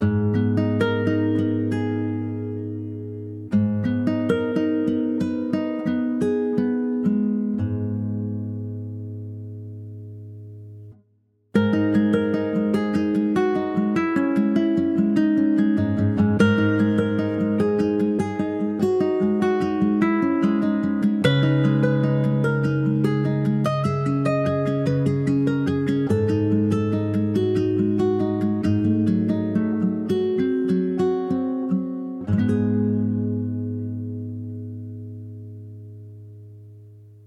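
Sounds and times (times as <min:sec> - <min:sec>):
guitar song: 0:00.0 - 0:37.2.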